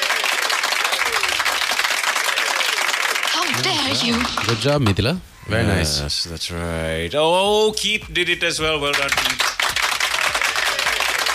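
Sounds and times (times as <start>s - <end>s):
applause sound effect: 0.0s - 5.2s, 8.6s - 11.3s
speech: 3.6s - 9.5s.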